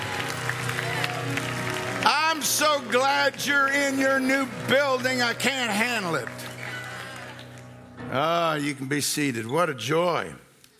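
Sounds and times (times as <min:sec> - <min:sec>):
audience clapping hands: 0:00.0 - 0:07.8
speech: 0:02.4 - 0:06.4, 0:08.1 - 0:10.4.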